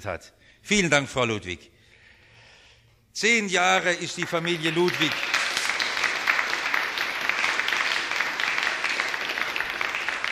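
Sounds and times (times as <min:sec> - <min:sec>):
speech: 0:00.0 - 0:01.8, 0:03.2 - 0:05.3
audience applause: 0:04.1 - 0:10.2.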